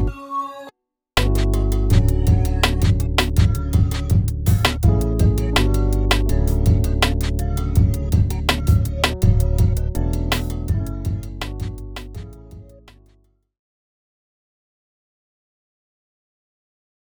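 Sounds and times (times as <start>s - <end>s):
drum kit: 1.2s - 13.0s.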